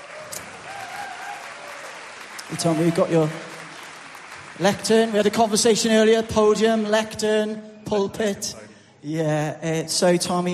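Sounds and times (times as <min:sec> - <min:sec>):
audience applause: 0:00.0 - 0:05.6
speech: 0:02.5 - 0:03.5, 0:04.6 - 0:10.5.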